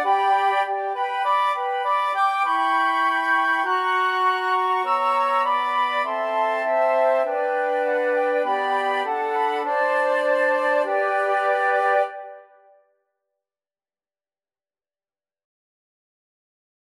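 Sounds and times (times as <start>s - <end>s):
flute choir: 0.0s - 12.8s.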